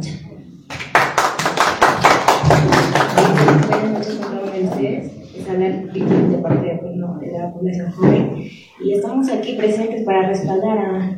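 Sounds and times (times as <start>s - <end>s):
audience applause: 0.7s - 4.7s
speech: 3.6s - 11.1s.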